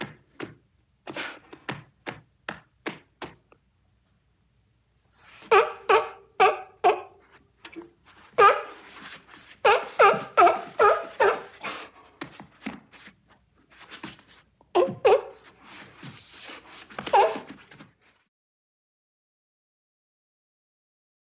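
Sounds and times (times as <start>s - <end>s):
seal crying: 5.5s - 7.2s, 8.4s - 8.8s, 9.7s - 11.9s, 14.8s - 15.4s.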